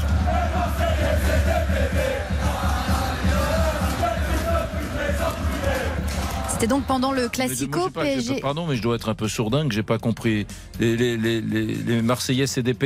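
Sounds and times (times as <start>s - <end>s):
Paris football supporters chanting in the Tribune Boulogne stands: 0.0s - 8.3s
speech: 6.6s - 12.8s.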